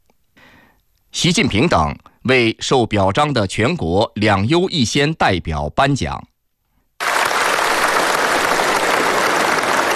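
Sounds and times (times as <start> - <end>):
speech: 1.2 - 6.3
warm applause from a large crowd: 7.0 - 9.9.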